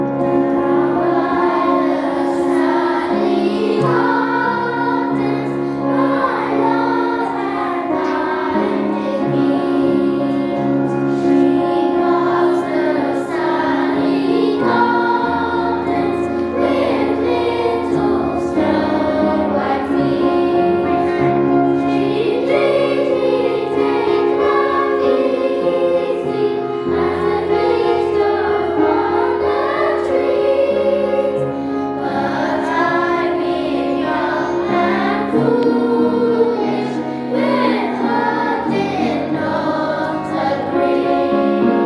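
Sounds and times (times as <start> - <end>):
choir singing: 0.2 - 41.8.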